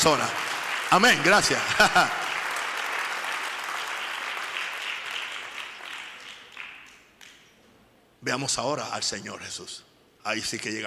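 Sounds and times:
speech: 0.0 - 2.2, 8.2 - 10.8
audience applause: 0.0 - 7.4
laughter: 1.4 - 2.4.

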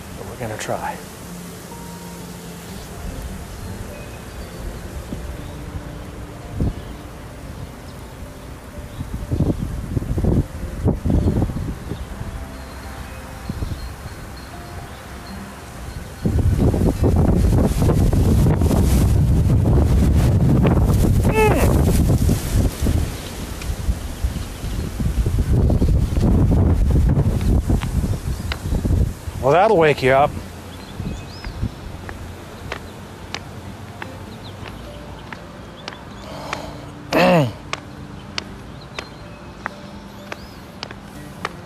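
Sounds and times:
speech: 0.4 - 1.2, 29.5 - 30.4
strong wind outdoors: 2.6 - 35.1.

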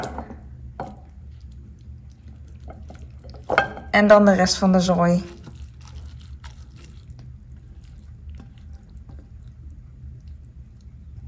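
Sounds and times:
noodles being put into a bowl: 1.1 - 11.2
speech: 4.0 - 5.4.

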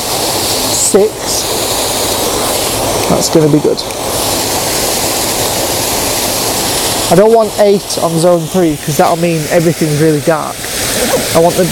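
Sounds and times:
waterfall pouring over surrounding rocks: 0.0 - 11.6
speech: 0.9 - 1.6, 3.1 - 4.4, 7.1 - 11.6.

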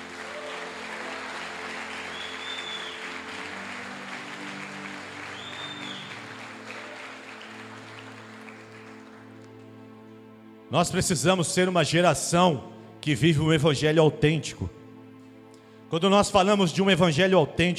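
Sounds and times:
audience applause: 0.0 - 9.7
sustained musical tone: 0.0 - 16.6
whistle-like rises: 2.1 - 3.1
speech: 10.7 - 14.8, 15.9 - 17.7.

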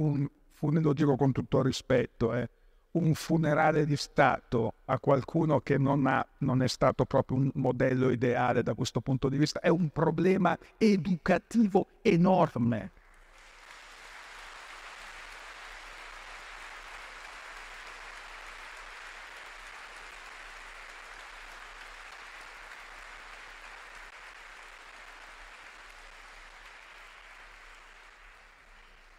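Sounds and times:
speech: 0.0 - 13.0
audience applause: 13.0 - 29.1.

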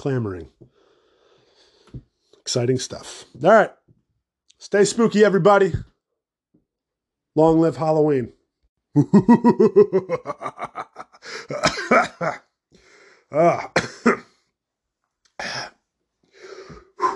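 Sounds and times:
speech: 0.0 - 0.8, 1.9 - 3.8, 4.6 - 5.9, 7.4 - 8.4, 9.0 - 12.4, 13.3 - 14.2
laughter: 9.0 - 12.4
person clearing throat and coughing from mozzarella stick breading: 11.4 - 12.4, 13.4 - 14.4, 15.4 - 15.8.

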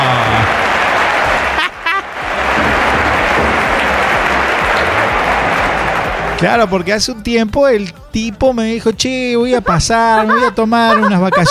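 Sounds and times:
laughter: 0.0 - 6.8, 9.5 - 11.4
audience applause: 0.0 - 7.2
speech: 6.4 - 11.4.

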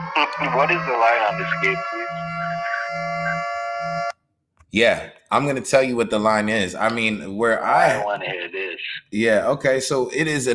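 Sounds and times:
siren sound effect: 0.0 - 4.1
speech: 0.2 - 3.1, 4.7 - 10.5.

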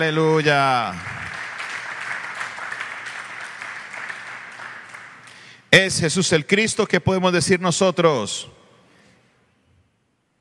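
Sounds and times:
speech: 0.0 - 1.1, 5.7 - 8.6
crowd applauding: 0.8 - 5.6.

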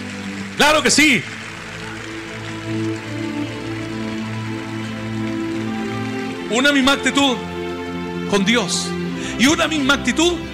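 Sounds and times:
loud audience applause: 0.0 - 8.0
speech: 0.6 - 1.4, 6.5 - 7.5, 8.3 - 10.5.

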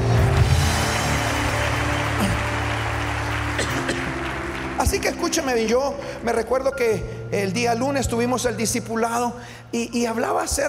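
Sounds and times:
crowd applauding: 0.0 - 6.5
speech: 4.8 - 10.6.

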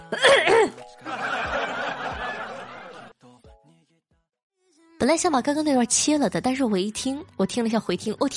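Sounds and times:
man clearing throat: 0.0 - 0.8
laughter: 1.0 - 3.1
speech: 5.1 - 8.3.

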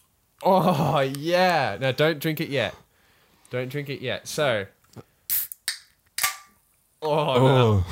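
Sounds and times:
speech: 0.4 - 2.8, 3.5 - 5.1, 7.0 - 7.8
drink can cracked open with a twang: 5.3 - 6.5.

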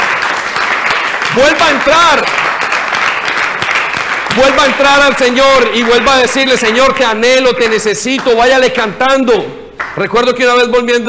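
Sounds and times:
audience applause: 0.0 - 8.3
speech: 1.4 - 2.6, 4.4 - 11.0.

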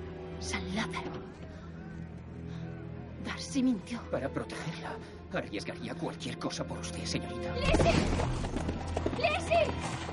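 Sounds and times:
speech: 0.4 - 1.4, 3.4 - 10.1
horse hooves as a horse is ridden off: 7.6 - 10.1.

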